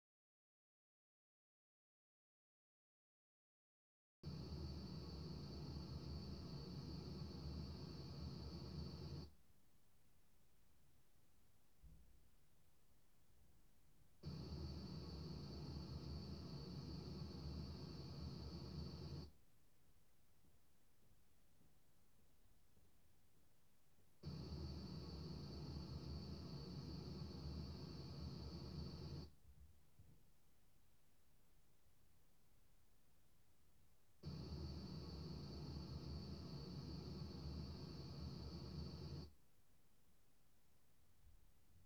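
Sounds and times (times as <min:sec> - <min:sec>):
white noise in an announcer booth: 0:04.3 - 0:09.6, 0:13.7 - 0:19.5, 0:24.2 - 0:29.4, 0:34.1 - 0:39.4.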